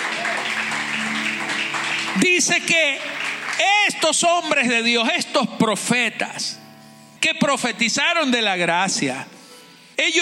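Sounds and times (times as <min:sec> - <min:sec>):
audience applause: 0:00.0 - 0:04.6
speech: 0:02.2 - 0:06.6, 0:07.2 - 0:09.4, 0:10.0 - 0:10.2.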